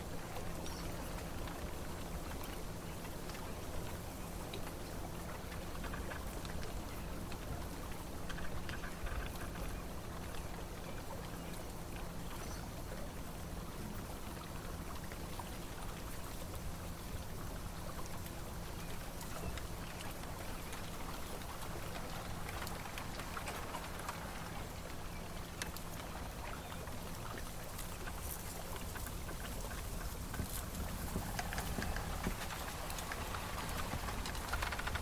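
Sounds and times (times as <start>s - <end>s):
low constant hum: 0.0s - 35.0s
bamboo thicket on water rustling: 21.0s - 35.0s.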